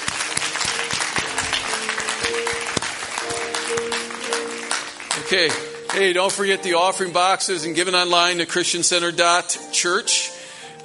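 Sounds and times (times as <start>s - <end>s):
audience hand clapping: 0.0s - 6.6s
speech: 5.3s - 10.8s.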